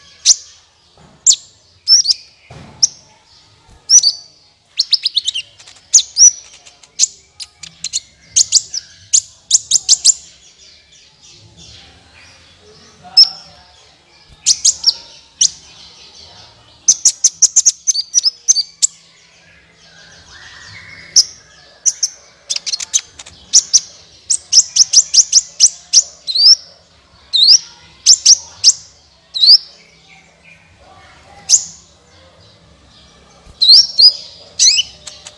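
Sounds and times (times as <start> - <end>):
sunbird high chirps: 0.0 - 35.3.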